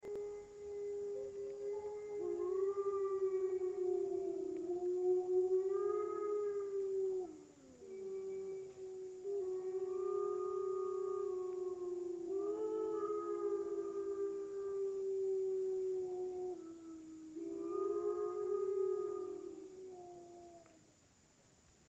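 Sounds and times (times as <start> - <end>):
wolf howling: 0.0 - 20.8.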